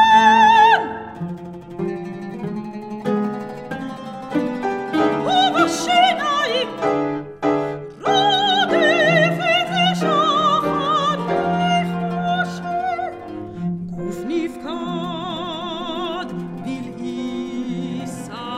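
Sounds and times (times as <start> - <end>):
soprano singing: 0.0 - 1.4, 3.8 - 18.5
cello: 0.0 - 18.5
oud: 0.0 - 18.5
piano: 0.0 - 18.5.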